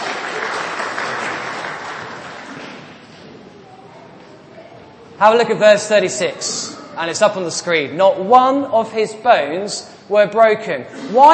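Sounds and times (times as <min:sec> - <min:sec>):
audience applause: 0:00.0 - 0:03.0
speech: 0:05.2 - 0:11.3.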